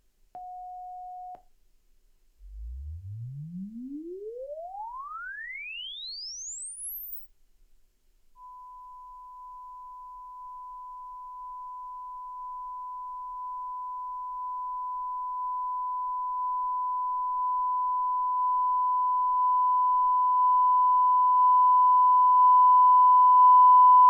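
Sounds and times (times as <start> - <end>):
calibration measurement signal from JBL 70cm speaker: 2.4 - 7.2, 8.4 - 24.0.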